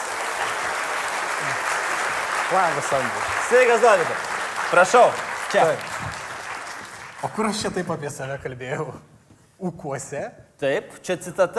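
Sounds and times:
studio audience applause on a Lithuanian evening show: 0.0s - 7.9s
speech: 2.5s - 6.0s, 7.2s - 11.5s.

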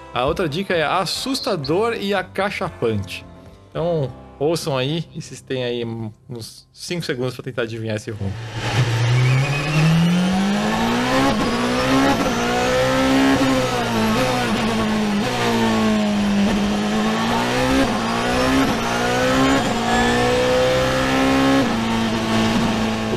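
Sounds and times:
speech: 0.1s - 8.6s
Porsche 919 Hybrid race car V4 engine revving: 8.3s - 23.1s.

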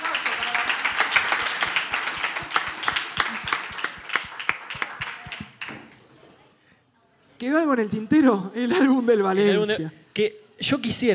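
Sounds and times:
audience applause: 0.0s - 5.8s
speech: 7.4s - 11.1s.

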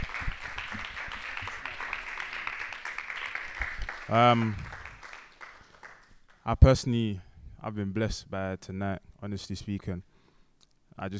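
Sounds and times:
audience applause: 0.0s - 6.1s
speech: 4.1s - 4.7s, 6.4s - 10.1s, 11.0s - 11.1s.

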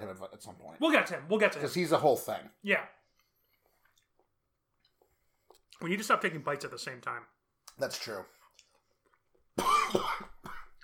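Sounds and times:
speech: 0.2s - 3.0s, 5.8s - 8.4s, 9.6s - 10.3s
person coughing from a throat itch: 9.6s - 10.8s.

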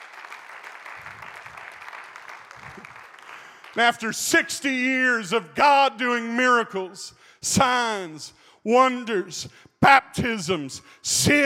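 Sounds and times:
audience clapping hands: 0.0s - 4.1s
speech: 3.8s - 11.4s.

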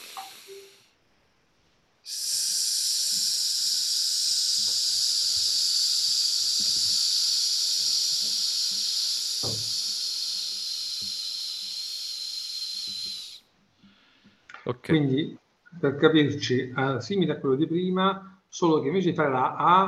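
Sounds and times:
long exhaled hiss as a voice exercise: 0.0s - 0.9s, 2.1s - 14.2s
speech: 14.7s - 19.8s.

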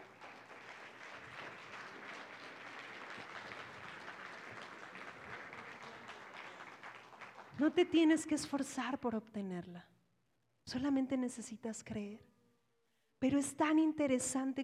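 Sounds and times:
church audience applauding: 0.0s - 7.7s
speech: 7.6s - 10.0s, 10.7s - 12.3s, 13.2s - 14.6s.

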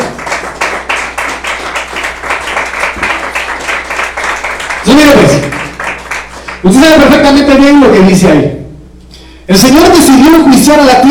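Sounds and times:
audience clapping: 0.0s - 7.2s
speech: 6.6s - 8.6s, 9.5s - 11.0s.

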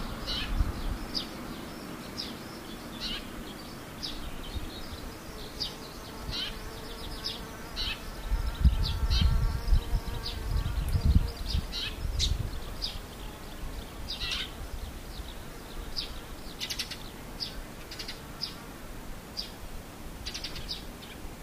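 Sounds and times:
swallows twittering: 0.0s - 18.6s
insect buzzing: 0.0s - 19.6s.

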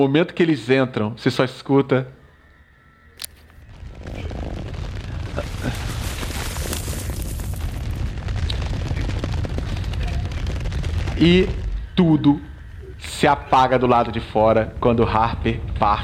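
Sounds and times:
speech: 0.0s - 2.2s, 11.2s - 16.0s
rockslide of stones sealing a passage: 4.3s - 11.1s.

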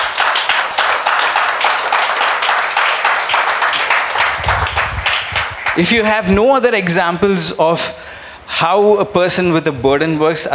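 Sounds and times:
audience clapping: 0.0s - 6.2s
speech: 5.8s - 10.5s.

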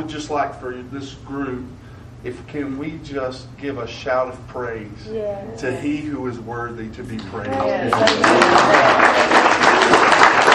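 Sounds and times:
speech: 0.0s - 9.4s
audience's light golf clap: 7.6s - 10.5s.

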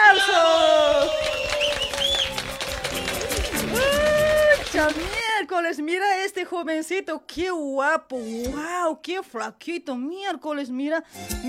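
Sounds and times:
crowd clapping with whoops and shouted cheers: 0.3s - 5.3s
speech: 5.6s - 11.4s.

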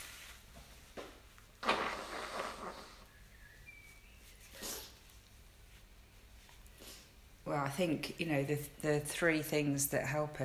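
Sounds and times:
nose blowing: 1.6s - 3.2s, 4.5s - 5.0s
speech: 7.5s - 10.4s.

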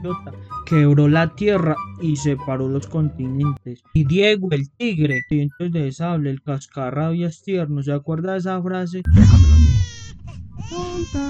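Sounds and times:
speech: 0.0s - 11.2s
baby crying: 9.1s - 11.2s
low rumbling background: 9.1s - 11.2s.

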